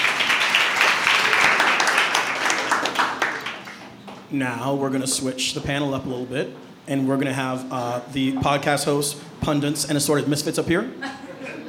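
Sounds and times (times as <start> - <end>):
round of applause: 0.0 - 4.0
speech: 4.3 - 11.2
laughter: 11.0 - 11.6.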